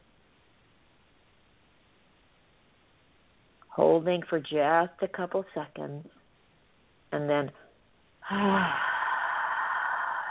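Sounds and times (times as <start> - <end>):
speech: 3.8 - 6.2, 7.1 - 7.6, 8.3 - 8.9
person exhaling through the mouth during a yoga breathing exercise: 8.2 - 10.2.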